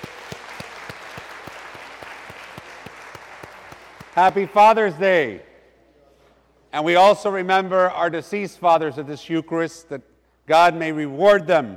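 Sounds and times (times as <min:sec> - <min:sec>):
audience applauding: 0:00.0 - 0:04.6
speech: 0:04.2 - 0:05.5, 0:06.7 - 0:11.7.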